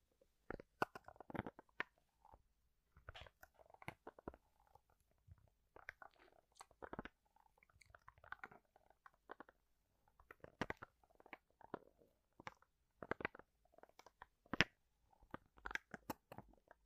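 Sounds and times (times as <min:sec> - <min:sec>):
bone-cracking sounds made from household objects: 0:00.5 - 0:02.4, 0:05.8 - 0:09.5, 0:10.3 - 0:16.7.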